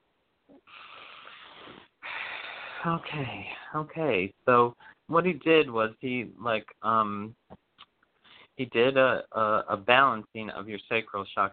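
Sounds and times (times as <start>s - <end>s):
short sniff in through the nose: 0.6s - 3.2s
deep breath out through the mouth, long steady hissing: 0.7s - 2.9s
speech: 2.8s - 7.4s, 8.6s - 11.5s.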